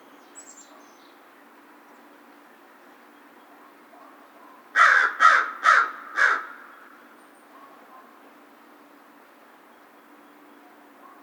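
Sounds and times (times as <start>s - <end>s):
American crow cawing: 4.8s - 7.0s.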